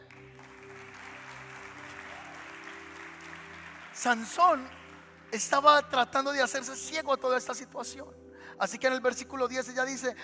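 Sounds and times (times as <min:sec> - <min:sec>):
audience applauding: 0:00.0 - 0:06.7
speech: 0:04.0 - 0:10.2.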